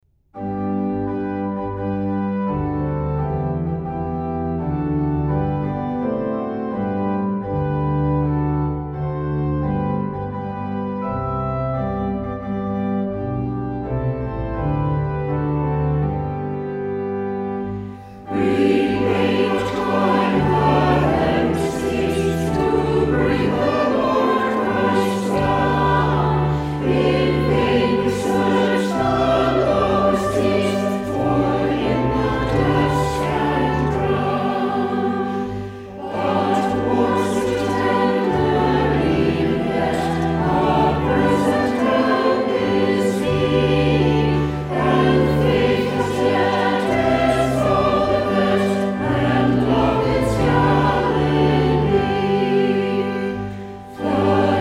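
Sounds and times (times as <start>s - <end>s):
hymn: 0.4s - 54.5s.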